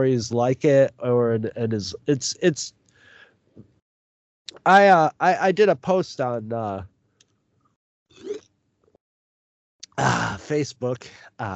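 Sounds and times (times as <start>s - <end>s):
speech: 0.0s - 2.8s, 4.6s - 6.9s, 10.0s - 11.5s
person sipping water: 8.2s - 8.4s.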